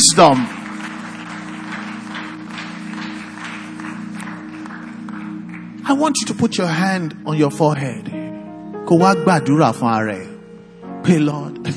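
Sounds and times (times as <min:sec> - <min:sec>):
audience clapping: 0:00.0 - 0:06.6
sustained low keyboard drone: 0:00.0 - 0:11.7
speech: 0:00.1 - 0:00.6, 0:05.9 - 0:08.2, 0:08.9 - 0:10.3, 0:11.0 - 0:11.7.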